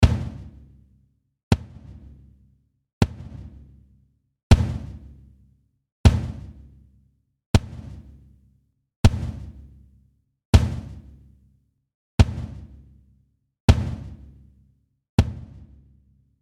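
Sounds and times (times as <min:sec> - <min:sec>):
kick drum: 0:00.0 - 0:00.6, 0:01.5 - 0:02.3, 0:03.0 - 0:03.8, 0:04.5 - 0:05.2, 0:06.1 - 0:06.8, 0:07.6 - 0:08.2, 0:09.0 - 0:09.7, 0:10.6 - 0:11.1, 0:12.2 - 0:12.9, 0:13.7 - 0:14.4, 0:15.2 - 0:15.8.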